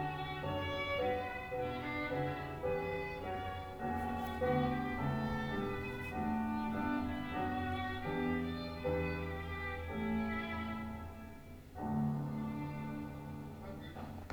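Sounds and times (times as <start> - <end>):
piano: 0.0 - 14.3
violin: 0.0 - 14.3.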